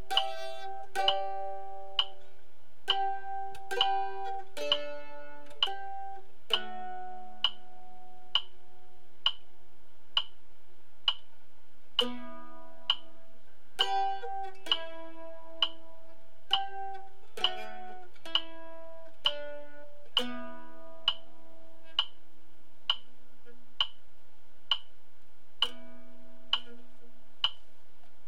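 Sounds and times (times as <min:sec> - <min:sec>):
mandolin melody: 0:00.0 - 0:09.6, 0:11.9 - 0:22.3, 0:25.6 - 0:27.3.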